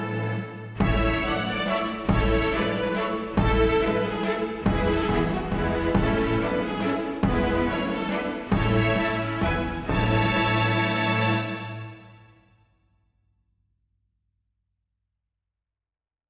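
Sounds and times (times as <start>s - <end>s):
string quintet playing a minuet: 0.0s - 12.4s
drums: 0.8s - 11.7s.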